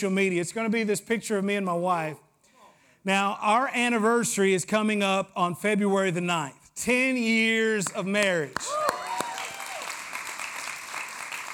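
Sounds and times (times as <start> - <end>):
speech: 0.0 - 2.3, 3.0 - 8.9
audience clapping: 7.8 - 11.5.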